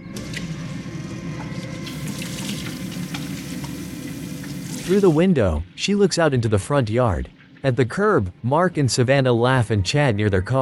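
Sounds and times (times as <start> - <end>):
washing hands under a running sink tap: 1.7 - 5.2
speech: 4.9 - 10.5.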